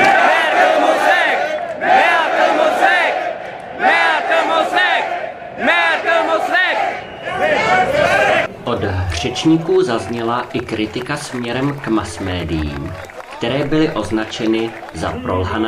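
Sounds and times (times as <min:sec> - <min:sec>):
protesters loudly chanting a slogan: 0:00.0 - 0:10.6
speech: 0:09.2 - 0:15.6.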